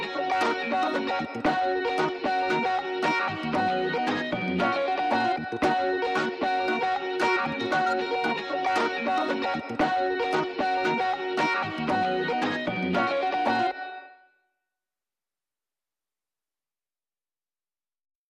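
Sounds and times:
organ: 0:00.0 - 0:14.0
guitar: 0:00.0 - 0:14.2.

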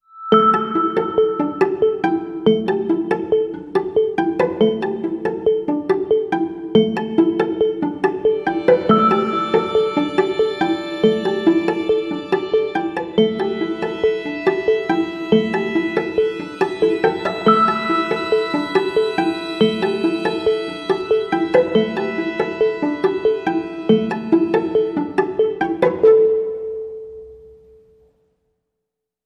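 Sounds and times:
instrumental music without percussion: 0:00.2 - 0:28.2.

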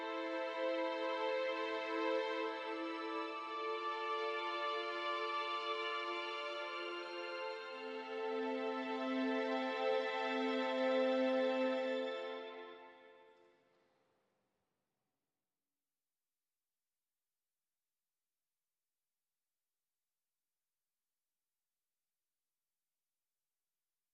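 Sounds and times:
strings: 0:00.0 - 0:13.5.

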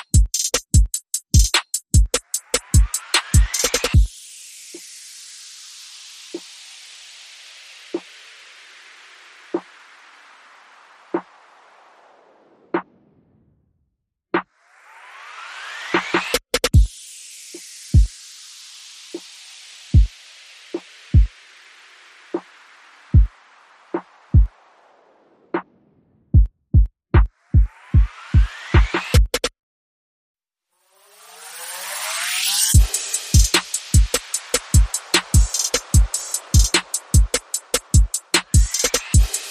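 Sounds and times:
percussion: 0:00.0 - 0:08.7, 0:15.7 - 0:21.5, 0:22.2 - 0:23.4, 0:24.0 - 0:24.6, 0:26.4 - 0:29.5, 0:30.9 - 0:39.4.

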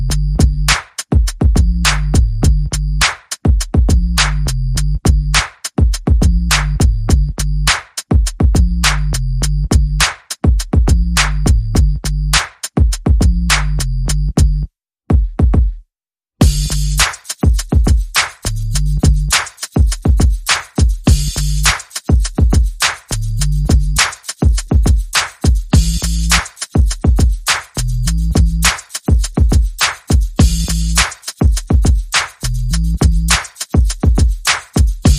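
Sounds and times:
bass: 0:00.0 - 0:00.8, 0:01.4 - 0:03.1, 0:03.8 - 0:07.8, 0:08.4 - 0:10.1, 0:10.8 - 0:14.7, 0:16.4 - 0:17.2, 0:17.9 - 0:19.4, 0:21.1 - 0:21.8, 0:22.6 - 0:24.1, 0:25.7 - 0:26.5, 0:27.8 - 0:28.8, 0:30.4 - 0:31.1, 0:32.4 - 0:33.5, 0:34.9 - 0:35.1
percussion: 0:00.0 - 0:15.8, 0:16.4 - 0:35.1.

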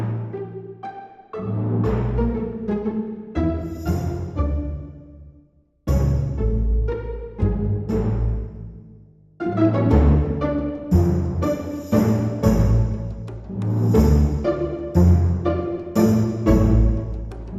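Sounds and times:
strings: 0:00.0 - 0:17.5
percussion: 0:01.8 - 0:02.4, 0:03.6 - 0:04.4, 0:05.9 - 0:06.8, 0:09.9 - 0:17.5.

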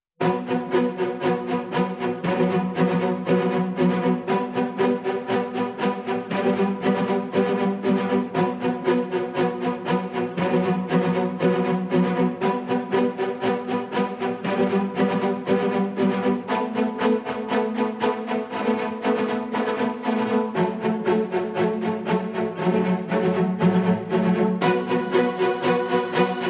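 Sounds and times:
string instruments mix: 0:00.2 - 0:26.4.

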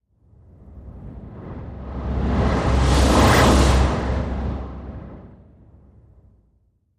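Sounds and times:
turbulent whoosh sweep: 0:00.8 - 0:05.6.

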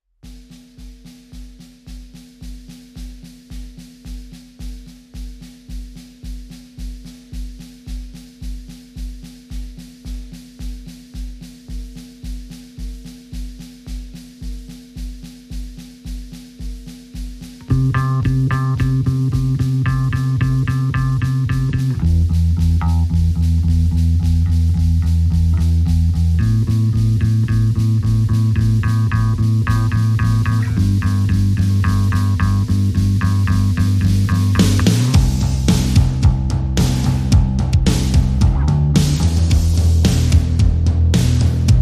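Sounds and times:
drums: 0:00.0 - 0:41.8
bass: 0:17.6 - 0:41.8.

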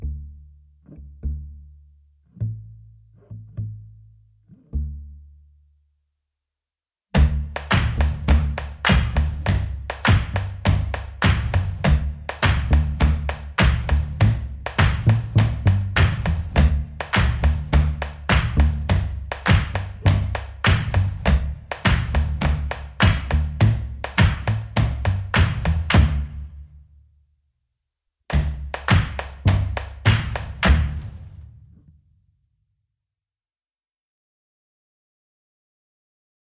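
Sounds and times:
bass: 0:00.0 - 0:06.1, 0:07.1 - 0:27.2, 0:28.3 - 0:32.3
drums: 0:07.2 - 0:26.4, 0:28.3 - 0:31.4.

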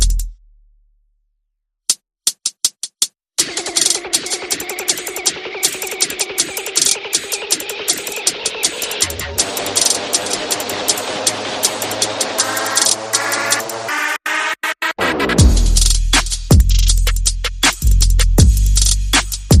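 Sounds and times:
percussion: 0:00.0 - 0:00.3, 0:01.9 - 0:19.5
sound effects: 0:03.4 - 0:15.5.

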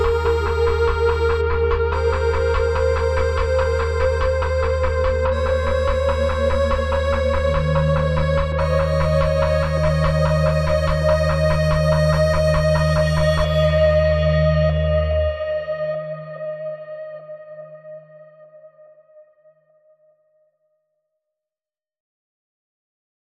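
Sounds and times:
underscore music: 0:00.0 - 0:17.8
Alpine ambience: 0:00.0 - 0:18.3.

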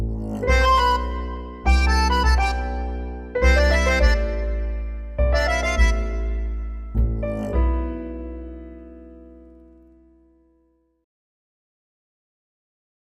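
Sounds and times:
tango music: 0:00.0 - 0:10.0.

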